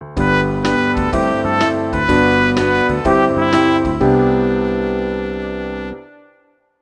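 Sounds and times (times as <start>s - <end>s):
baritone saxophone: 0.2s - 6.4s.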